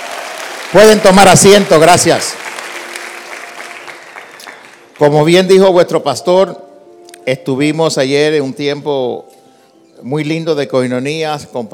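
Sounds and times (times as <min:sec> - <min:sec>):
audience applause: 0:00.0 - 0:04.9
speech: 0:00.7 - 0:02.4, 0:05.0 - 0:06.6, 0:07.2 - 0:09.3, 0:10.0 - 0:11.7.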